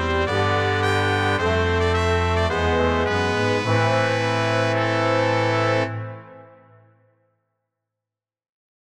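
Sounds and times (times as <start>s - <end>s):
brass playing: 0.0s - 7.1s.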